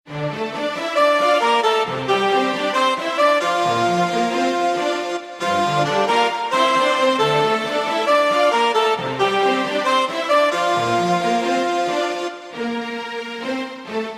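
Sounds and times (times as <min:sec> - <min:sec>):
orchestral music: 0:00.1 - 0:14.1.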